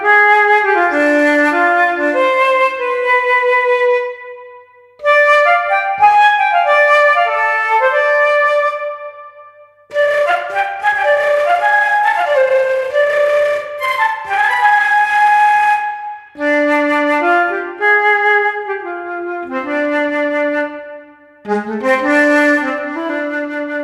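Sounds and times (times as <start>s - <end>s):
woodwind call: 0.0s - 23.8s.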